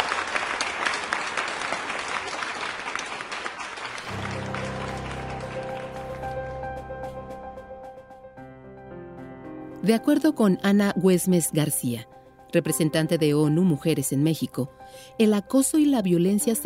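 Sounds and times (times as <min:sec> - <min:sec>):
audience applause: 0:00.0 - 0:06.9
speech: 0:09.8 - 0:16.6.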